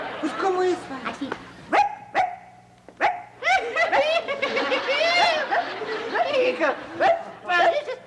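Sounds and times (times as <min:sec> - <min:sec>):
laughter: 0:00.0 - 0:00.9, 0:03.4 - 0:08.0
speech: 0:00.2 - 0:01.8
voice imitating small dog barking: 0:01.7 - 0:03.4.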